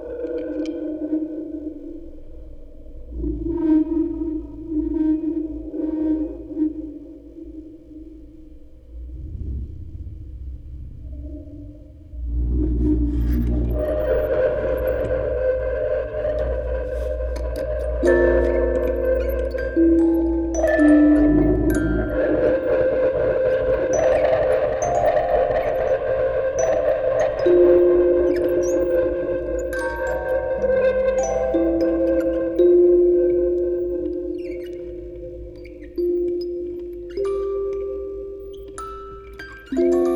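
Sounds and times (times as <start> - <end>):
field recording ambience: 0.0 - 40.1
quartet of music boxes playing: 13.4 - 40.1.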